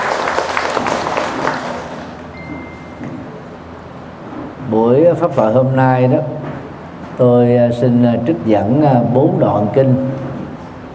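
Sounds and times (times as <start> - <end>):
loud round of applause: 0.0 - 2.2
speech: 4.7 - 6.4, 7.2 - 10.2.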